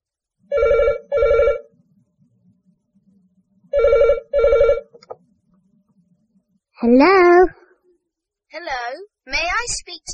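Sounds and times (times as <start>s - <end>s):
telephone ringing: 0.5s - 1.7s, 3.7s - 4.9s
speech: 6.8s - 7.6s, 8.5s - 10.1s.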